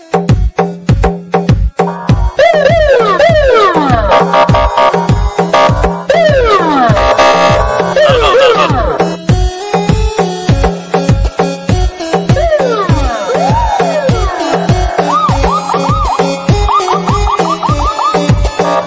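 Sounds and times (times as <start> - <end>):
Russian and Uzbek bass music: 0.3 - 18.8.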